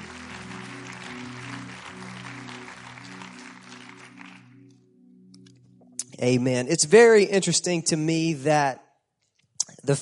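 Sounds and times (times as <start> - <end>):
audience clapping hands: 0.0 - 4.8
speech: 6.2 - 8.8.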